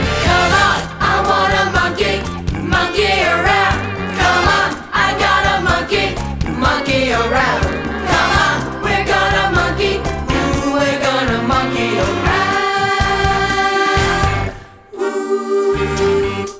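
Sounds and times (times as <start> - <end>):
callback vocal: 0.0 - 16.5.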